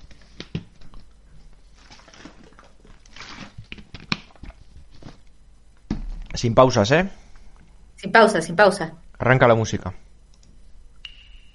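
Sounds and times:
person drinking water: 0:00.2 - 0:05.2
thump: 0:05.9 - 0:06.3
speech: 0:06.4 - 0:07.2, 0:08.0 - 0:10.0.

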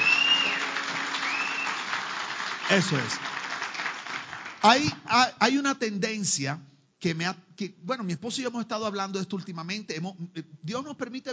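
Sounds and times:
loud audience applause: 0:00.0 - 0:04.9
speech: 0:02.7 - 0:03.4, 0:04.6 - 0:11.3.

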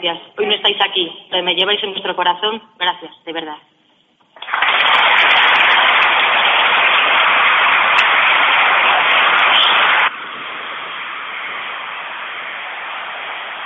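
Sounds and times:
speech: 0:00.0 - 0:03.8
applause: 0:04.3 - 0:13.6.

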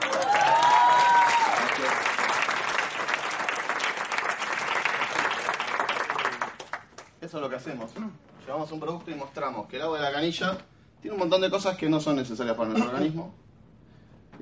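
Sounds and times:
audience applause: 0:00.0 - 0:07.1
speech: 0:07.4 - 0:13.4.

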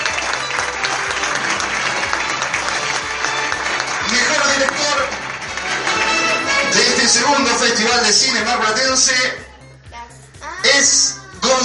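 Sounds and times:
audience applause: 0:00.0 - 0:08.5
speech: 0:07.1 - 0:09.5, 0:10.7 - 0:11.6.

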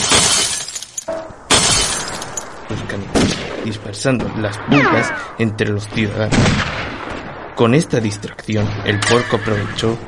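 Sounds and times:
glass shards tinkling: 0:00.0 - 0:02.5
thrown glass jar smashing: 0:00.0 - 0:02.5
speech: 0:03.6 - 0:06.9, 0:07.6 - 0:10.0.

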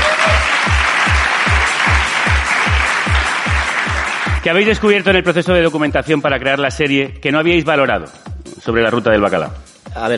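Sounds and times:
audience applause: 0:00.0 - 0:04.5
speech: 0:04.4 - 0:10.1.

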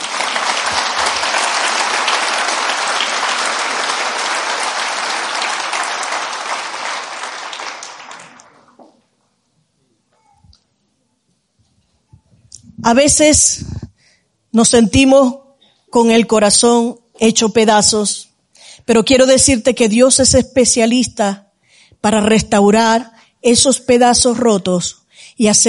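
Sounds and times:
audience applause: 0:00.0 - 0:09.0
speech: 0:12.9 - 0:13.7, 0:14.6 - 0:18.3, 0:18.9 - 0:21.4, 0:22.0 - 0:25.6.

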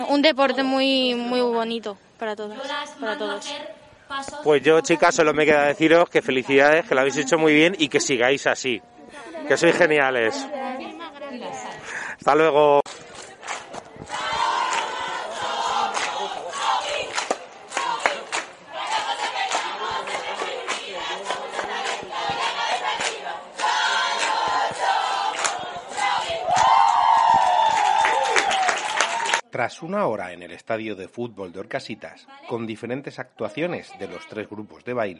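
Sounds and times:
speech: 0:00.1 - 0:12.8, 0:29.8 - 0:35.1
large stadium crowd cheering and applauding: 0:13.0 - 0:29.4.

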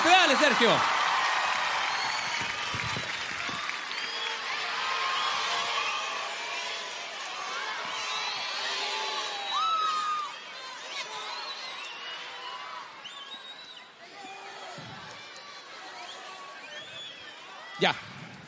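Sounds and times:
audience applause: 0:00.0 - 0:10.3
speech: 0:00.4 - 0:01.0, 0:17.8 - 0:18.1.

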